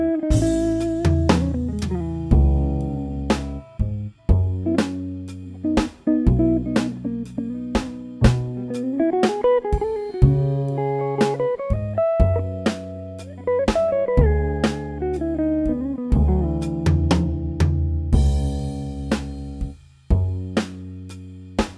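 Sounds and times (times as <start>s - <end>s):
jazzy music: 0.3s - 19.7s.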